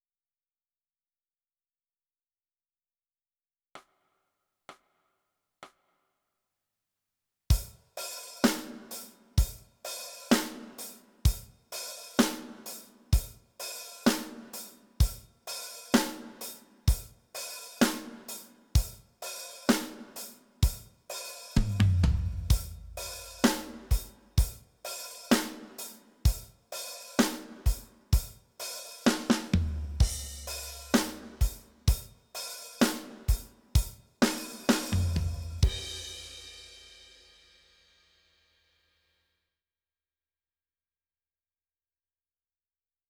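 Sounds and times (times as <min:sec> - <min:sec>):
drums: 0:07.5 - 0:38.6.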